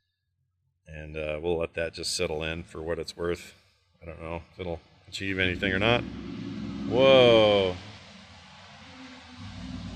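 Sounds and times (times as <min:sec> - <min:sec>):
speech: 0:00.9 - 0:07.9
construction cars and trucks passing outside: 0:05.2 - 0:09.9.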